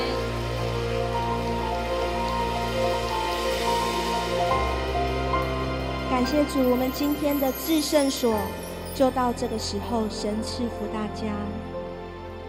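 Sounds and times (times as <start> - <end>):
crowd clapping: 0.0 - 6.0
speech: 6.2 - 11.7.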